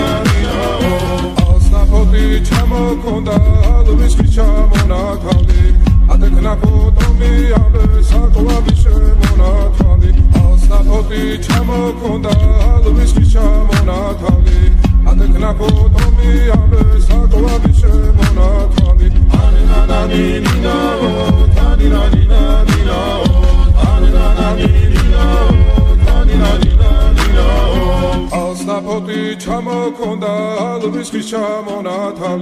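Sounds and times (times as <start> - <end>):
trap remix of Georgian folk music: 0.0 - 32.3.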